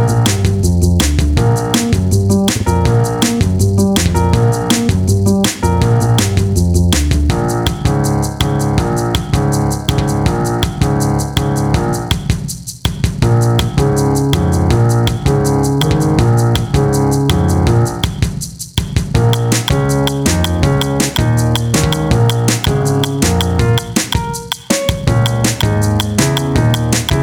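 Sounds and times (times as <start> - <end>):
spy jazz music: 0.0 - 12.4, 13.2 - 18.3, 19.1 - 27.2.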